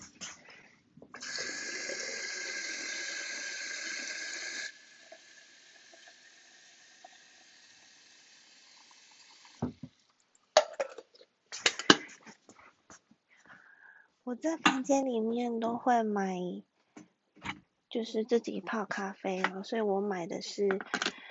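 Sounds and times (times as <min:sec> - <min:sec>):
water running into an electric kettle: 0:01.2 - 0:10.0
speech: 0:14.3 - 0:16.7, 0:18.0 - 0:21.2.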